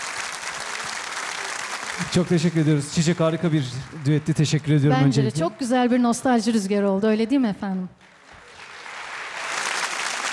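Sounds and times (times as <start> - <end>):
audience applause after a duet on a televised evening show: 0.0 - 5.7, 8.0 - 10.3
speech: 2.1 - 8.1.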